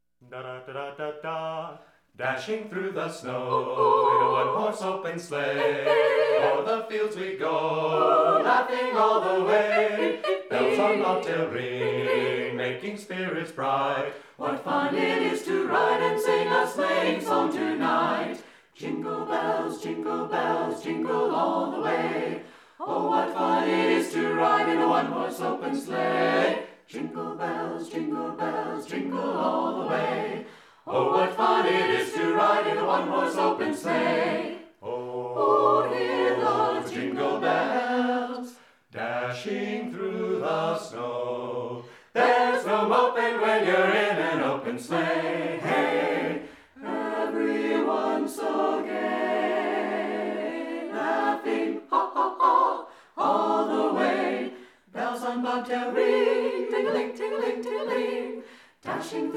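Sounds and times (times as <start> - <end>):
Christmas song: 0.2 - 59.3.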